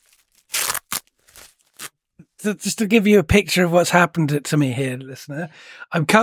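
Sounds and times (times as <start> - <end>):
tape pulled off a wrapped present: 0.0 - 2.0
speech: 2.4 - 6.2.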